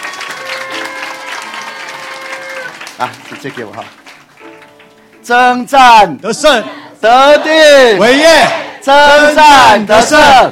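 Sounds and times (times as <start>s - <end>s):
audience applause: 0.0s - 4.8s
speech: 3.0s - 4.0s, 5.2s - 10.4s.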